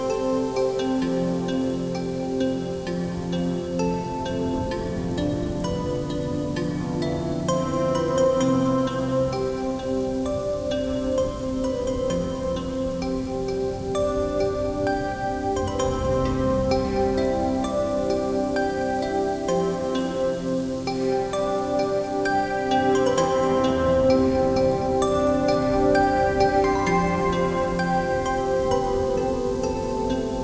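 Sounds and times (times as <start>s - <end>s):
gentle droplets: 0.0s - 30.4s
thunderstorm: 13.8s - 19.0s.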